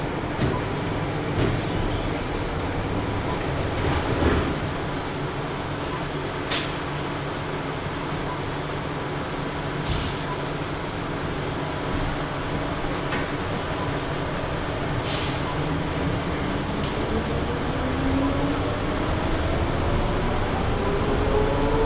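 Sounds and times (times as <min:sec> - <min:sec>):
airport shuttle train: 0:00.0 - 0:21.8.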